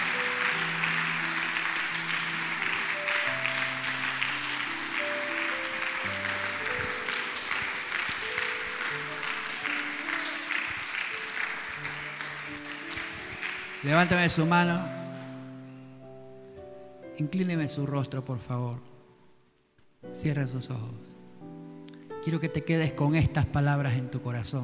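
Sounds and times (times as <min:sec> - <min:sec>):
loud audience applause: 0:00.0 - 0:14.4
speech: 0:13.8 - 0:15.0, 0:17.2 - 0:18.9, 0:20.2 - 0:21.1, 0:22.2 - 0:24.6.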